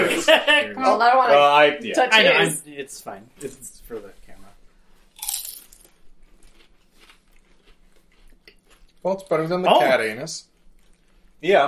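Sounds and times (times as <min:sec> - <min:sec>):
laughter: 0:00.0 - 0:02.6
speech: 0:00.4 - 0:04.1, 0:09.0 - 0:10.5, 0:11.4 - 0:11.6
crunching bite of food: 0:05.2 - 0:09.3
chewing: 0:05.2 - 0:09.6, 0:10.4 - 0:11.4.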